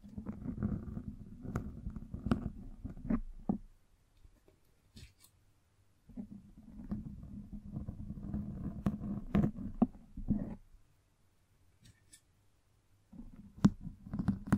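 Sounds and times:
microphone brushing and scratching: 0.0 - 3.7, 6.1 - 10.7, 13.1 - 14.5.

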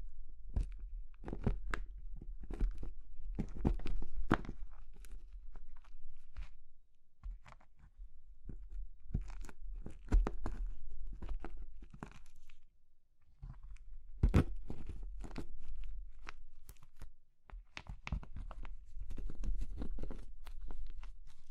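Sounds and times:
crumbly material such as soap, chalk or meringue crushed: 0.4 - 12.7, 13.4 - 21.4.

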